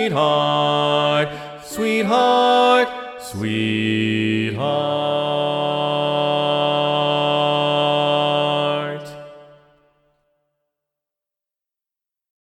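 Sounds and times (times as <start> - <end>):
bass voices predominant in an SATB choir: 0.0 - 9.4.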